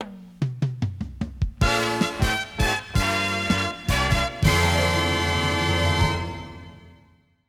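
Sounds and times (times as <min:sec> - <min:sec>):
outro music: 0:01.6 - 0:07.1.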